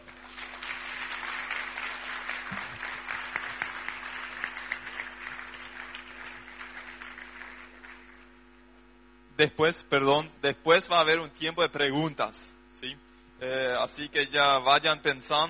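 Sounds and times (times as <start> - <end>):
audience applause: 0.0 - 8.2
faint steady hum: 0.0 - 15.4
speech: 9.4 - 15.4.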